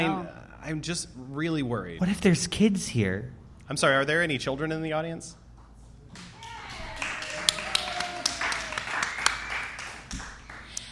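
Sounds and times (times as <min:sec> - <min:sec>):
speech: 0:00.0 - 0:05.4
audience applause: 0:06.2 - 0:10.7.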